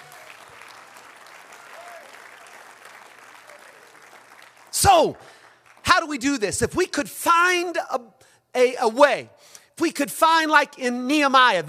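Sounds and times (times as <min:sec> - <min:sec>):
audience clapping hands: 0:00.0 - 0:06.2
speech: 0:04.8 - 0:05.4, 0:06.0 - 0:11.6.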